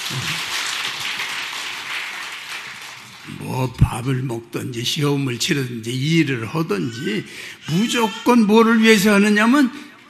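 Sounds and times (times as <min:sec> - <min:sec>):
audience clapping: 0:00.0 - 0:03.7
speech: 0:00.1 - 0:00.5, 0:03.5 - 0:10.0.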